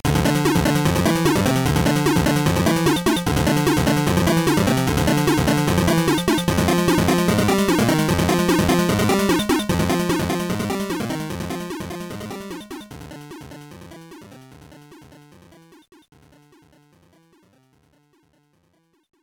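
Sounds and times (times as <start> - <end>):
background music: 0.1 - 14.2.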